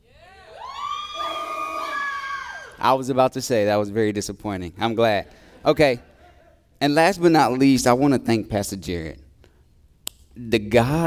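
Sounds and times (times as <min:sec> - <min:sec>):
youth group cheering and shrieking: 0:00.0 - 0:02.8
speech: 0:02.8 - 0:06.1, 0:06.8 - 0:09.2, 0:10.4 - 0:11.0.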